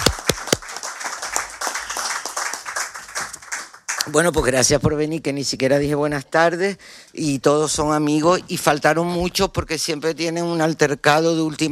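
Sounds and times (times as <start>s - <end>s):
audience clapping: 0.0s - 4.8s
speech: 4.1s - 11.7s.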